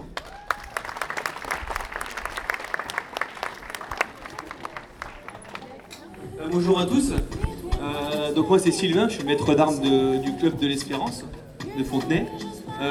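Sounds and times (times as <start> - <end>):
audience applause for fencing team: 0.0 - 6.2
speech: 6.5 - 12.8.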